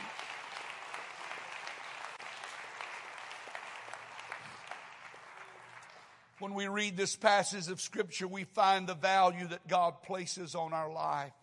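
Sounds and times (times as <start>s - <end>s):
audience clapping hands: 0.0s - 6.5s
speech: 6.4s - 11.4s.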